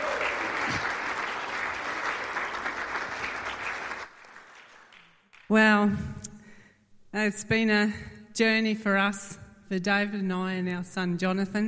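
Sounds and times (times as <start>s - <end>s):
audience applause welcoming a missionary speaker at a church gathering: 0.0s - 5.2s
speech: 5.5s - 6.2s, 7.1s - 11.6s.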